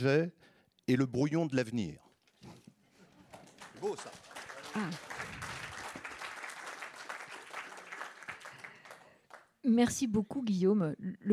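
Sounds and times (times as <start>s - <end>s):
speech: 0.0s - 2.6s, 3.8s - 5.2s, 9.6s - 11.3s
audience applause: 3.1s - 9.5s.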